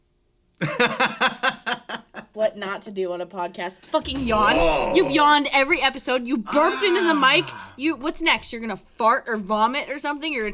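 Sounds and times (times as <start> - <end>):
speech: 0.6 - 1.4, 2.4 - 10.5
laughter: 0.6 - 2.3
person imitating chicken clucking: 4.1 - 5.3, 6.5 - 7.8.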